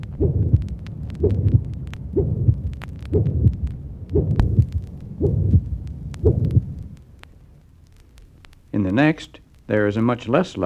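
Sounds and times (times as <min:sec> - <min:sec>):
loud harsh musical systolic heart murmur: 0:00.0 - 0:06.9
speech: 0:09.0 - 0:10.6.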